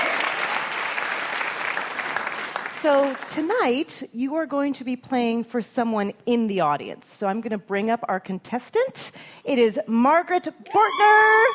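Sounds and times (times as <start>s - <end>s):
audience applause at a live quiz show taping: 0.0s - 3.4s
speech: 2.8s - 11.5s.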